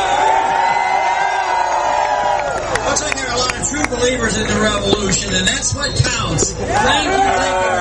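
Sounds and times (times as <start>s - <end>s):
crowd cheering and whooping at a gathering: 0.0s - 3.7s, 6.0s - 7.7s
speech: 4.0s - 7.7s.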